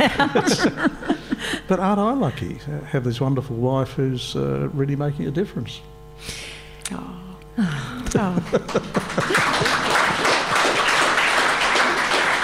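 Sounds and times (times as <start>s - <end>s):
laughter: 0.0s - 2.4s, 7.6s - 12.4s
speech: 0.0s - 10.0s
audience clapping: 8.1s - 12.4s.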